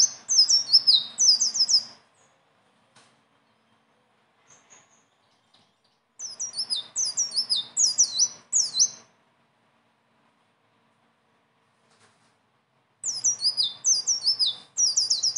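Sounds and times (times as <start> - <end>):
leafbird singing: 0.0 - 2.5, 3.4 - 9.1, 13.0 - 15.3.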